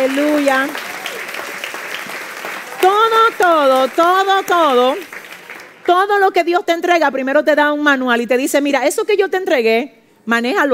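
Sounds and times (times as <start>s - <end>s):
speech: 0.0s - 0.9s, 3.2s - 5.2s, 5.9s - 10.7s
audience clapping: 0.0s - 6.2s.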